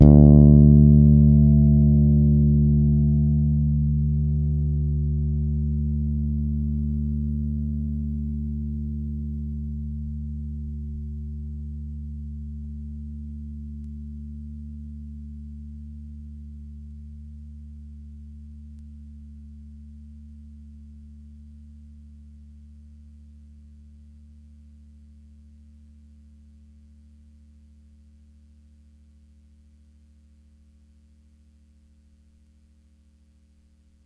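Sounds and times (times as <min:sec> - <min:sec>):
Pedulla Thunderbass bass guitar D sharp 3 played hard: 0:00.0 - 0:15.1.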